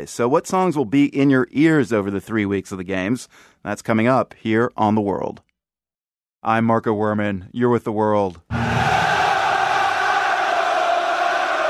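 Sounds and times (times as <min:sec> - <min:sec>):
speech: 0:00.0 - 0:05.4, 0:06.4 - 0:08.8
70,000 soccer fans cheering AC Roma at the Stadio Olimpico in Rome: 0:08.5 - 0:11.6.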